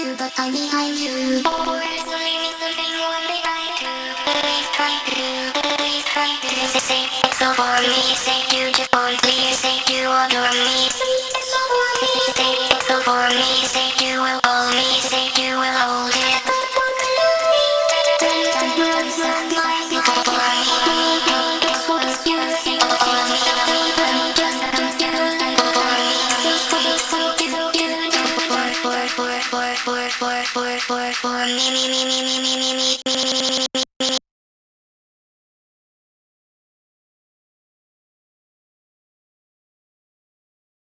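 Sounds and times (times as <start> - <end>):
main vocals: 0.0 - 34.2.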